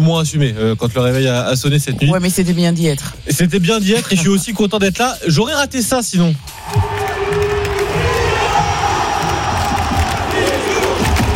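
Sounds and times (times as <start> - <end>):
speech: 0.0 - 7.0
Stade de France crowd cheering welcoming a player: 6.4 - 11.3.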